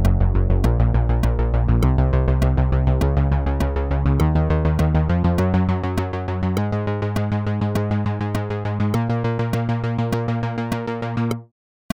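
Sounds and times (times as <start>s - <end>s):
sequenced bass: 0.0s - 11.5s.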